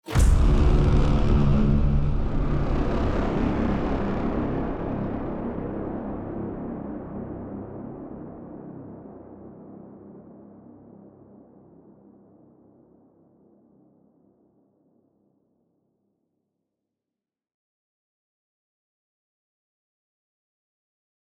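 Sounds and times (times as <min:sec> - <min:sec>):
cinematic braaam hits: 0:00.1 - 0:08.1.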